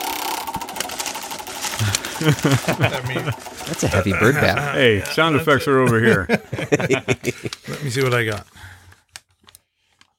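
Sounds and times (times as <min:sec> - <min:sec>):
roulette wheel spinning: 0:00.0 - 0:05.8
laughter: 0:01.8 - 0:08.4
speech: 0:02.2 - 0:08.8.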